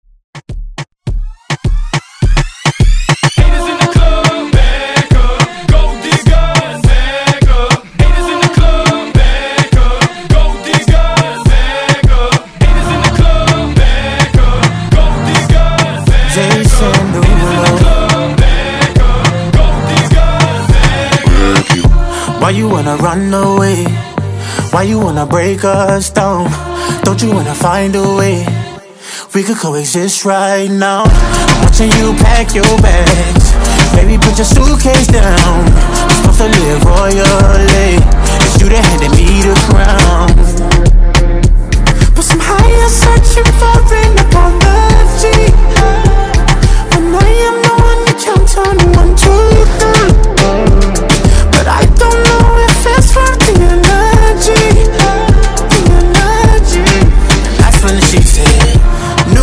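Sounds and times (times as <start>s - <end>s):
reggaeton hype music: 0.4s - 59.4s.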